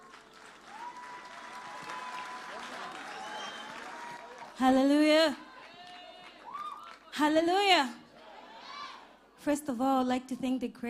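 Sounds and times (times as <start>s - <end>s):
audience applause at a church service welcoming a singer: 0.0s - 7.2s
speech: 4.6s - 5.4s, 7.2s - 8.0s, 9.4s - 10.8s.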